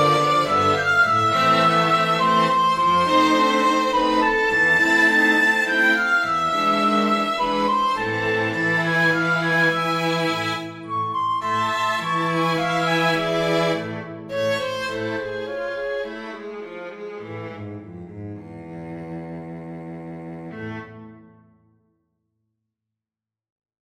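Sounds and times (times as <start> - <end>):
flute: 0.0 - 17.4
strings: 0.0 - 21.5.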